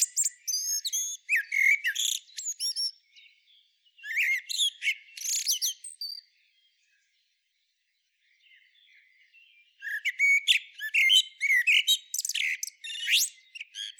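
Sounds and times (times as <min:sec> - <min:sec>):
Turdus merula common blackbird singing: 0:00.0 - 0:13.9.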